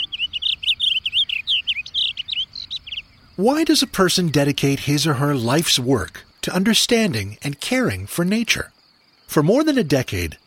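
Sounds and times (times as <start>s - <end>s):
bird chirping: 0.0s - 10.4s
speech: 3.4s - 10.4s.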